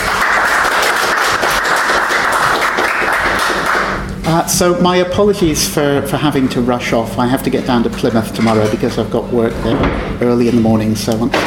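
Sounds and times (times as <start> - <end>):
audience applause welcoming a host to the mic at a live event: 0.0 - 4.1
speech: 4.3 - 11.4.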